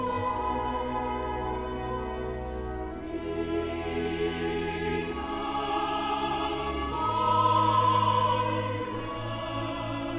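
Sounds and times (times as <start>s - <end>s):
women's choir singing in German: 0.0s - 10.1s.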